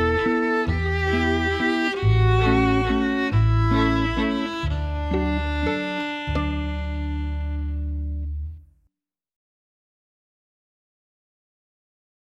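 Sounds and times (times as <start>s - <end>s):
cello playing a waltz: 0.0s - 8.6s.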